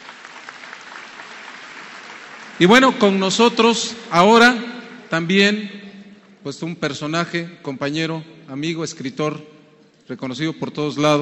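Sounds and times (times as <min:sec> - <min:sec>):
audience applause at a forum honoring an absent writer: 0:00.0 - 0:03.2
speech: 0:02.6 - 0:05.8, 0:06.4 - 0:09.5, 0:10.1 - 0:11.2.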